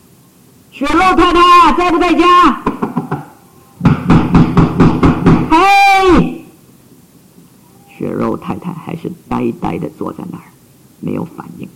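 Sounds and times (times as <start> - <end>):
speech: 0.8 - 2.6, 9.6 - 11.7
knocking on a door: 2.6 - 5.5.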